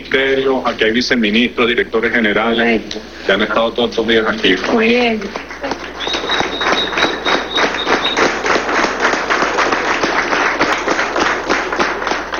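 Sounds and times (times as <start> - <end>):
speech: 0.1 - 5.5
crowd applauding: 4.3 - 12.3
high whistle-like cheer: 5.9 - 9.1.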